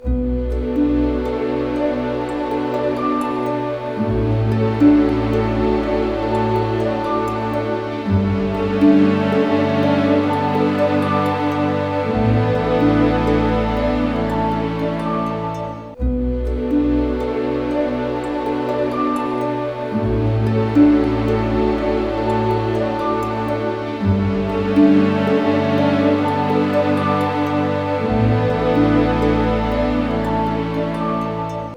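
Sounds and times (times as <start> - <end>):
sad orchestra music: 0.0 - 31.7.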